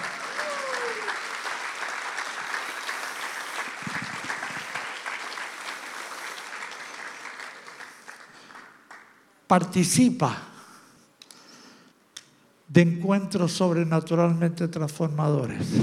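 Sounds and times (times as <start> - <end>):
audience applause: 0.0 - 9.2
speech: 9.5 - 10.5, 12.8 - 15.8.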